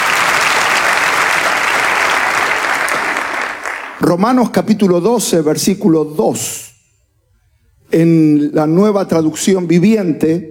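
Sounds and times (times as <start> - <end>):
audience applause: 0.0 - 4.0
speech: 4.0 - 6.6, 7.9 - 10.4.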